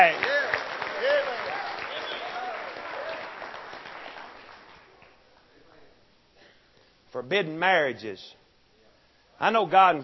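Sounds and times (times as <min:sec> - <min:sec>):
audience hand clapping: 0:00.0 - 0:05.2
speech: 0:07.1 - 0:08.4, 0:09.4 - 0:10.0.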